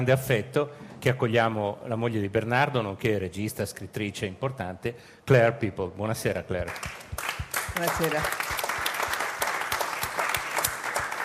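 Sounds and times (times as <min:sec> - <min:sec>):
speech: 0:00.0 - 0:07.0, 0:07.8 - 0:08.5
audience applause: 0:06.7 - 0:11.2.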